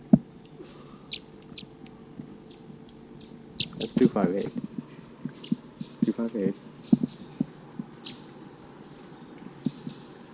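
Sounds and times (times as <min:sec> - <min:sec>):
low steady rumble: 0:00.0 - 0:10.3
wild male bird calling from treetop: 0:00.0 - 0:10.3
speech: 0:03.8 - 0:04.7, 0:06.2 - 0:06.7.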